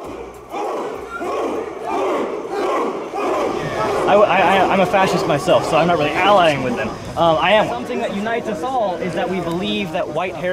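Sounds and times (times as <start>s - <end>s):
crowd chanting on the streets of Charlottesville: 0.0s - 7.2s
speech: 4.8s - 10.5s.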